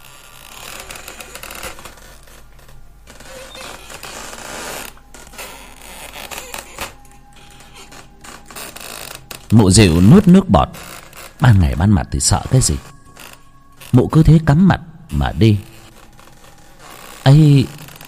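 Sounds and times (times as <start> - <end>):
bamboo stalks creaking as they rub together: 0.0 - 14.4, 15.1 - 18.0
speech: 9.5 - 13.0, 14.0 - 15.7, 17.3 - 17.8.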